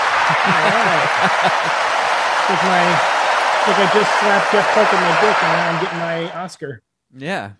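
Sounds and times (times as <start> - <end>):
laughter: 0.0 - 3.0, 3.7 - 6.6
crowd clapping and cheering: 0.0 - 6.5
speech: 0.4 - 1.9, 2.5 - 7.5.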